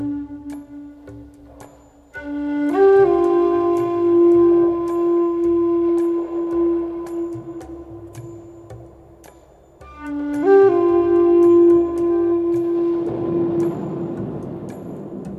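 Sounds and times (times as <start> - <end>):
relaxing Native American flute music: 0.0 - 15.3
thunder: 12.6 - 15.3.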